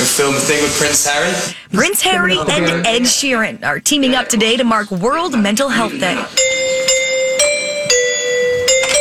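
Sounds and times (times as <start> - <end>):
speech: 0.2 - 6.5
doorbell ringing: 6.4 - 8.9.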